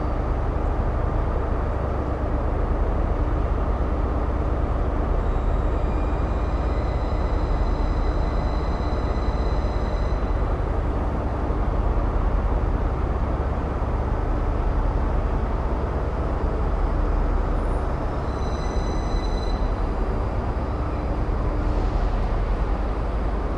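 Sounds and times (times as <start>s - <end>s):
sub tunnel noise: 0.0s - 23.5s.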